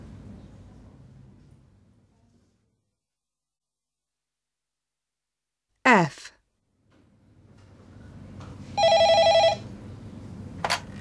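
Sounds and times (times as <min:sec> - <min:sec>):
telephone ringing: 0:08.8 - 0:09.7.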